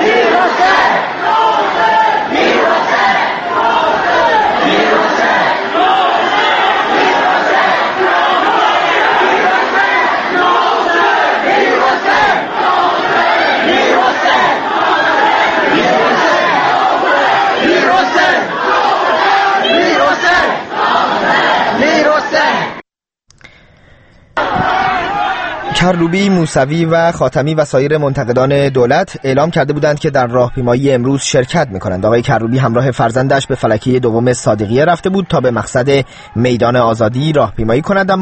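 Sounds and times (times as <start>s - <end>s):
large crowd of protesters chanting slogans in street: 0.0s - 22.8s, 24.4s - 26.4s
speech: 25.9s - 38.2s.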